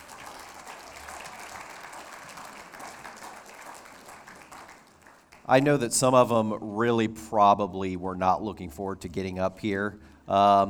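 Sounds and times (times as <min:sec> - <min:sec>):
audience applause: 0:00.0 - 0:05.5
speech: 0:05.5 - 0:10.6.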